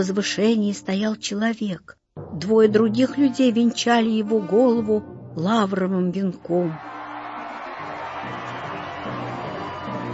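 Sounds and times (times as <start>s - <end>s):
speech: 0.0s - 7.0s
crowd shouting and cheering in a hall: 6.6s - 10.1s.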